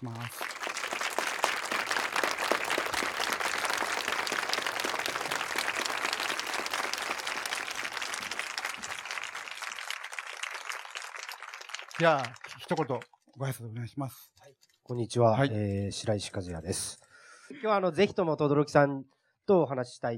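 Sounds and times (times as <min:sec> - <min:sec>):
speech: 0:00.0 - 0:00.6, 0:12.0 - 0:17.0, 0:17.6 - 0:20.1
audience applause welcoming guests: 0:00.0 - 0:13.0.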